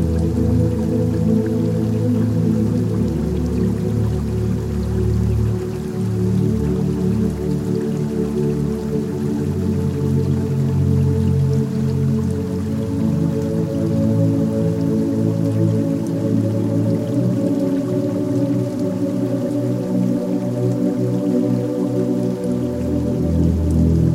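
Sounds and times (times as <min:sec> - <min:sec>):
faint patter of rain drops: 0:00.0 - 0:24.1
soft relaxing music of low sustained tones: 0:00.0 - 0:24.1.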